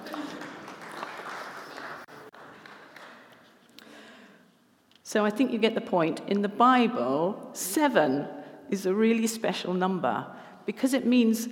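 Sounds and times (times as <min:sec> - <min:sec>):
audience clapping: 0:00.0 - 0:03.6
speech: 0:05.1 - 0:11.5.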